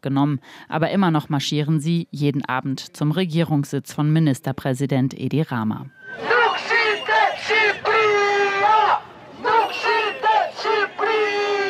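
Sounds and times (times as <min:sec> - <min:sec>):
speech: 0:00.0 - 0:06.7
protesters chanting that Albania is not for sale at an evening anti-government march: 0:06.0 - 0:11.6.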